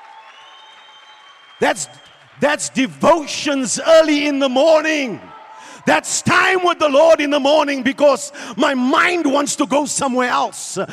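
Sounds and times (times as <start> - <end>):
audience clapping: 0.0 - 5.1
speech: 1.6 - 10.9.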